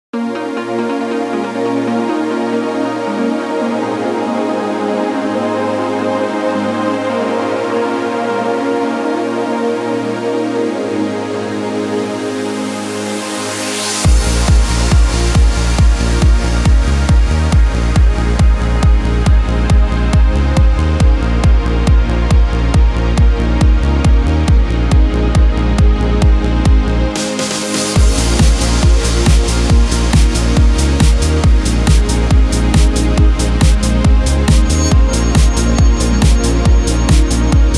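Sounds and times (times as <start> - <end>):
uplifting trance music: 0.2 - 37.7.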